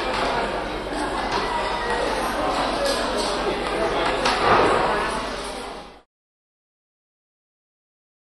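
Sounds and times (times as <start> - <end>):
light echoed chatter in a railway station restroom: 0.0 - 6.1.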